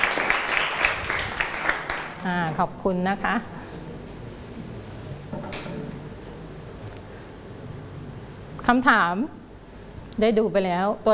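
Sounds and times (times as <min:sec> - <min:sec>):
audience applause: 0:00.0 - 0:02.2
speech: 0:02.2 - 0:03.6, 0:08.7 - 0:09.4, 0:10.2 - 0:11.1.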